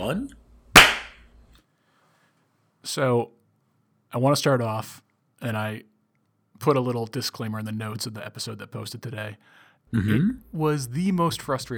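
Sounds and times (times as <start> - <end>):
speech: 0.0 - 0.4, 2.8 - 3.4, 4.1 - 5.9, 6.6 - 11.7
single hand clap: 0.8 - 1.2.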